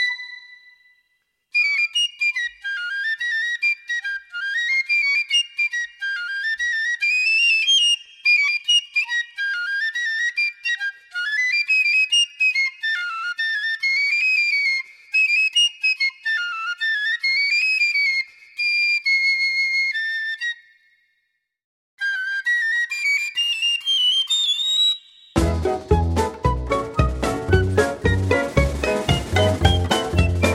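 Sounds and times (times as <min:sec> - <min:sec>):
piccolo: 0:00.0 - 0:21.2, 0:22.0 - 0:30.5.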